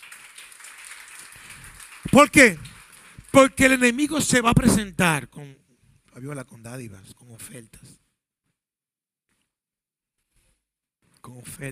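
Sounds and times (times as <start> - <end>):
crowd applause: 0.0 - 4.7
speech: 2.1 - 2.7, 3.4 - 5.6, 6.2 - 8.0, 11.2 - 11.7.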